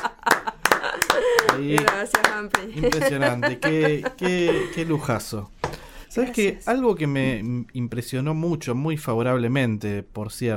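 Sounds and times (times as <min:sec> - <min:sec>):
small group hand clapping: 0:00.0 - 0:03.8
laughter: 0:00.0 - 0:05.4
speech: 0:01.6 - 0:10.5.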